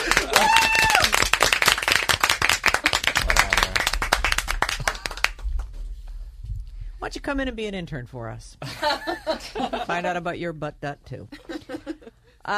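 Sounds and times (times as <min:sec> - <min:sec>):
group clapping: 0:00.0 - 0:05.8
speech: 0:07.2 - 0:11.9.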